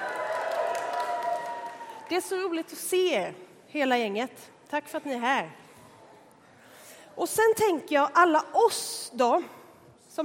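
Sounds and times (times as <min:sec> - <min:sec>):
audience cheering and clapping: 0:00.0 - 0:02.2
speech: 0:02.1 - 0:05.6, 0:07.2 - 0:09.6.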